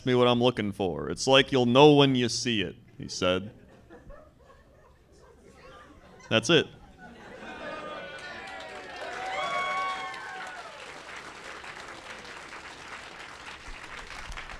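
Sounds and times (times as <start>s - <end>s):
speech: 0.0s - 3.6s, 6.3s - 6.8s
laughter: 3.4s - 9.6s
audience applause: 7.4s - 14.5s
whooping cheers: 7.8s - 11.1s.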